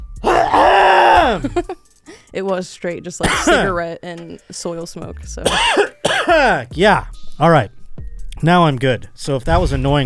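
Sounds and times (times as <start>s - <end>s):
throat clearing: 0.2s - 1.8s, 3.2s - 3.8s, 5.4s - 6.7s
speech: 1.4s - 7.8s, 8.4s - 10.0s.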